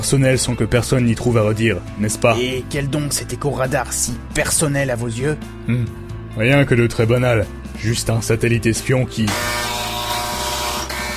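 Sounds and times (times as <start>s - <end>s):
speech: 0.0s - 9.7s
buzzer sounding: 9.3s - 11.1s.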